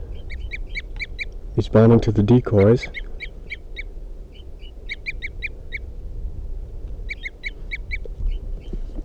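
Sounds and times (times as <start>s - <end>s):
wild bird tooping call: 0.0s - 1.4s, 2.3s - 5.9s, 7.0s - 9.0s
speech: 1.6s - 3.1s.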